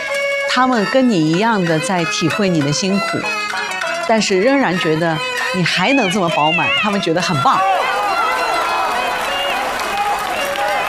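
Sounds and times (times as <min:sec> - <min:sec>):
speech: 0:00.6 - 0:03.4, 0:04.1 - 0:07.8
theatre audience voices and cheers: 0:05.9 - 0:10.8
theatre audience applause: 0:07.6 - 0:10.8.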